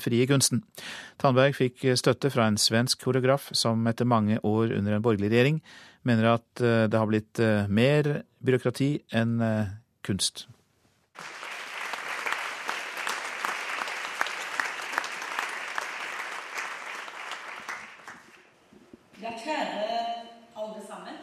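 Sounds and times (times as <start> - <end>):
speech: 0.0 - 10.6, 11.2 - 11.4
audience applause at a conference: 11.2 - 18.5.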